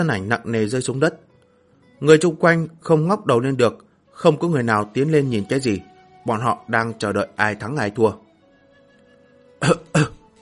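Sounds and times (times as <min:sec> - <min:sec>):
speech: 0:00.0 - 0:01.3, 0:02.0 - 0:08.2, 0:09.6 - 0:10.2
wounded blood-covered man coughing hoarsely: 0:09.6 - 0:10.2.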